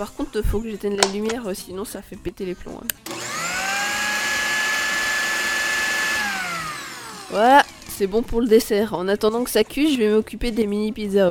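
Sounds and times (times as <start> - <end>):
speech: 0.0 - 3.3, 7.3 - 11.2
old electric hand mixer running: 3.0 - 8.4.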